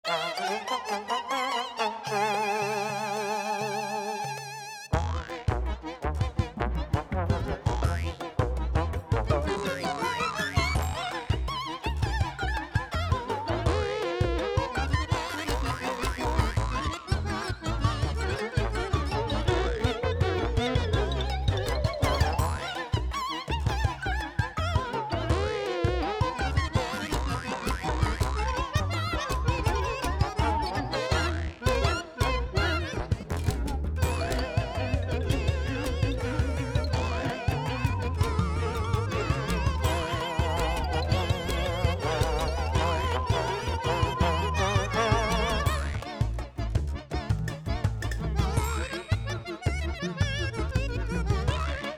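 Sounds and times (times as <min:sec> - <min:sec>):
battle background music: 0:00.0 - 0:51.9.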